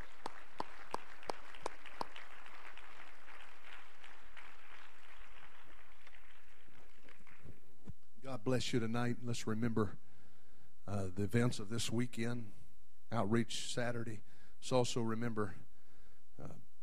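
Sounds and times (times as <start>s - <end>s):
audience clapping hands in praise: 0.0s - 7.8s
speech: 8.4s - 10.1s, 10.9s - 15.7s, 16.4s - 16.7s.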